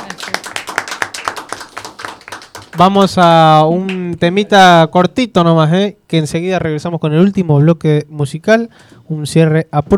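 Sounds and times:
applause for the winner: 0.0 - 3.0
speech: 2.8 - 9.9.

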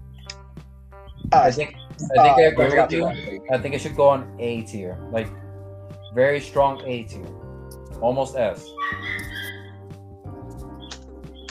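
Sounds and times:
speech: 1.3 - 5.4, 6.1 - 7.4, 8.0 - 9.2
dog whining: 8.8 - 9.7.

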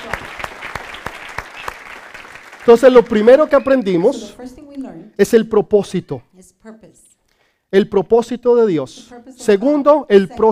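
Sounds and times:
audience clapping loudly: 0.0 - 4.0
speech: 2.6 - 7.0, 7.7 - 10.5.

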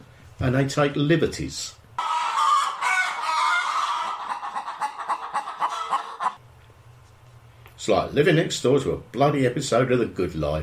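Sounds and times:
speech: 0.4 - 1.8, 7.9 - 10.6
flock of chickens clucking: 2.0 - 6.4
rooster crowing: 2.0 - 6.4.

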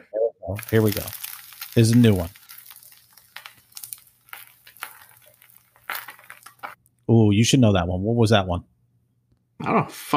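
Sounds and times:
speech: 0.5 - 1.2, 1.8 - 2.4, 7.4 - 8.7, 9.6 - 10.1
fire crackling: 0.5 - 7.1.

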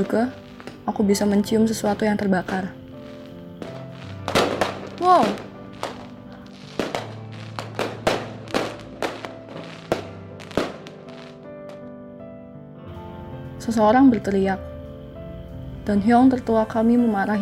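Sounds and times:
speech: 0.0 - 2.8, 5.0 - 5.4, 13.7 - 14.7, 15.9 - 17.4
fireworks explosion: 0.0 - 11.8.

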